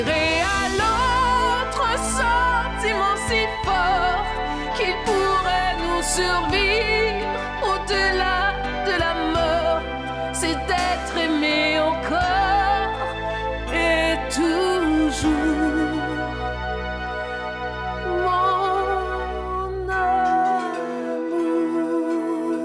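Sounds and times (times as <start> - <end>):
person singing with many nuances in the voice: 0.0 - 16.8, 18.0 - 22.6.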